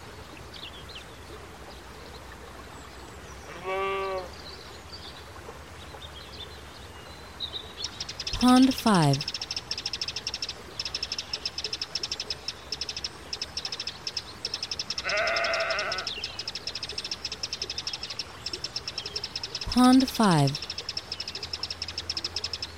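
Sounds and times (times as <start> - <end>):
rapid high chirping birdsong: 7.4 - 22.7
speech: 8.4 - 9.4, 19.8 - 20.6
sheep bleating: 15.0 - 16.1.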